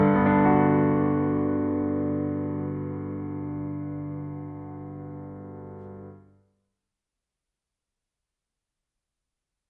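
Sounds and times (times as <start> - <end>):
pensive music: 0.0 - 6.3.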